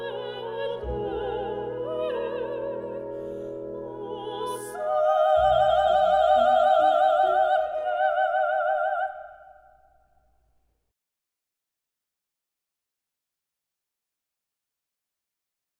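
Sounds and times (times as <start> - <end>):
operatic duet: 0.0 - 9.9.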